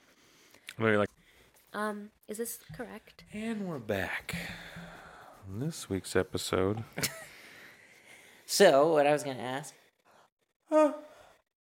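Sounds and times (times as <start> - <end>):
speech: 0.8 - 1.1, 1.8 - 7.2, 8.5 - 9.8, 10.7 - 11.1
loud voiced yawn: 10.7 - 11.2.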